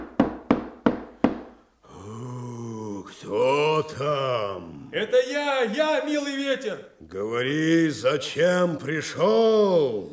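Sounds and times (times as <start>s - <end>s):
heavy knocks on a large wooden castle gate: 0.0s - 1.6s
speech: 3.3s - 10.1s.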